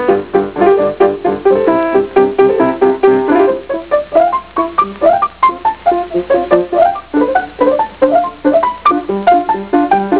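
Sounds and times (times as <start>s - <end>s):
piano: 0.0s - 10.1s.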